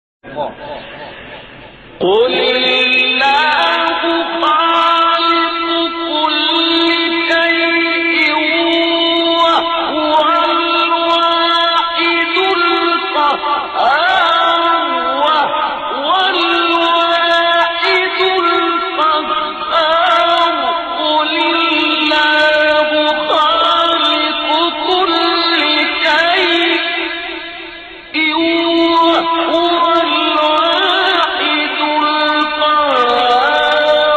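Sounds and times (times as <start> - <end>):
Quran recitation: 0.2 - 34.1.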